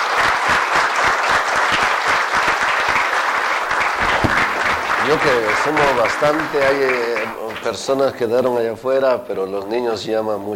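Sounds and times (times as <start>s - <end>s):
applause: 0.0s - 8.2s
speech: 5.1s - 10.5s.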